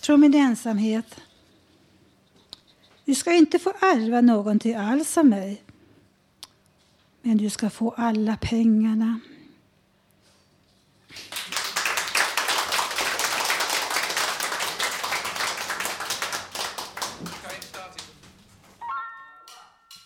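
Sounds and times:
speech: 0.0 - 1.3, 3.1 - 5.7, 7.2 - 9.3
concert applause: 11.3 - 18.2.

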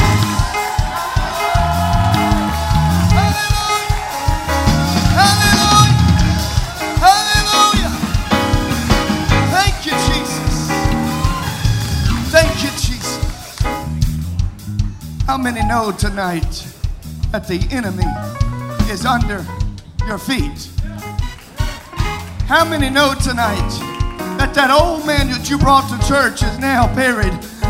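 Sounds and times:
people shouting praise: 0.0 - 13.6
audience clapping: 0.0 - 14.2, 20.9 - 24.7
loud steady music: 0.0 - 16.0, 16.7 - 27.6
speech: 15.4 - 16.7, 17.3 - 20.8, 22.5 - 27.5.

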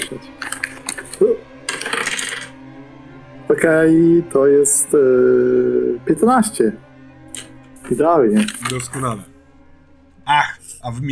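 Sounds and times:
speech: 0.1 - 0.4, 3.5 - 6.9, 7.9 - 9.3, 10.3 - 11.0
dice clattering across a hard surface: 0.4 - 2.6, 8.4 - 9.0.

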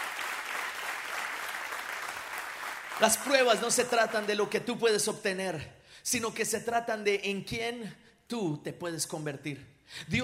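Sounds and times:
loud applause: 0.0 - 4.3
speech: 3.0 - 10.2.

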